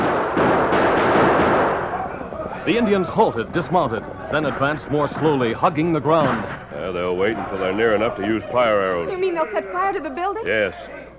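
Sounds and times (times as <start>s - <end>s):
rifle and revolver gunfire barrage: 0.0s - 2.0s
speech: 2.6s - 11.0s.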